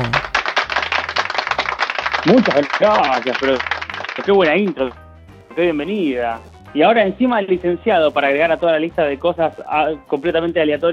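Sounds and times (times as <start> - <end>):
applause: 0.0 - 5.0
speech: 2.2 - 5.0, 5.6 - 10.9.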